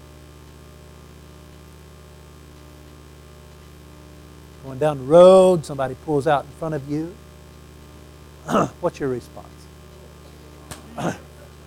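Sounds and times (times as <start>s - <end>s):
low steady hum: 0.0s - 11.6s
speech: 4.6s - 7.2s, 8.4s - 9.6s, 11.0s - 11.2s
person sneezing: 8.4s - 8.8s, 10.8s - 11.3s.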